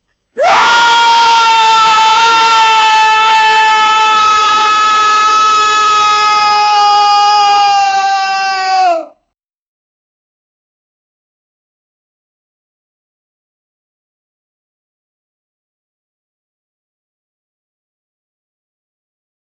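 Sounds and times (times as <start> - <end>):
man screaming: 0.4 - 9.2.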